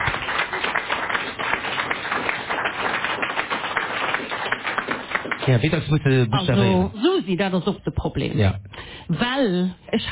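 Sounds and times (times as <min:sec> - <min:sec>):
audience applause: 0:00.0 - 0:06.0
speech: 0:05.5 - 0:10.1.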